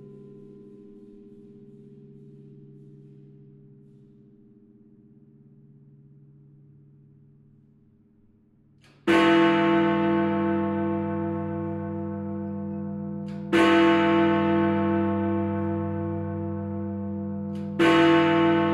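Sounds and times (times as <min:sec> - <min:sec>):
chimes of Big Ben: 0:09.1 - 0:18.7.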